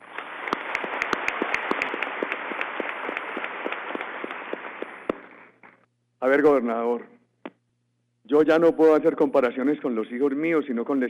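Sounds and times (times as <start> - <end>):
audience applause: 0.0 - 5.1
speech: 6.2 - 7.1, 8.3 - 11.0.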